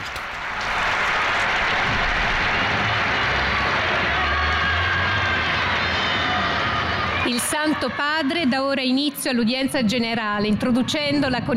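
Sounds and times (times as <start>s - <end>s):
large audience applauding: 0.0s - 8.3s
speech: 7.3s - 11.5s.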